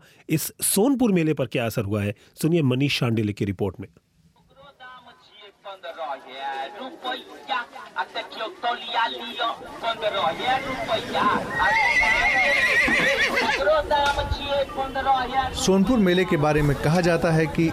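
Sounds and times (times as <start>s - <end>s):
speech: 0.3s - 4.0s, 8.0s - 17.7s
crowd murmur: 5.9s - 17.7s
horses neighing at a livestock fair: 9.7s - 13.7s.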